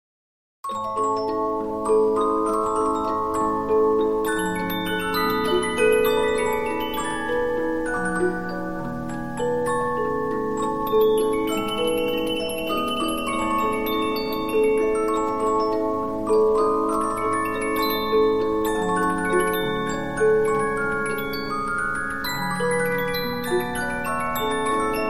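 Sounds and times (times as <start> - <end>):
Polyphon 15-inch disc music box playing: 0.7 - 25.0.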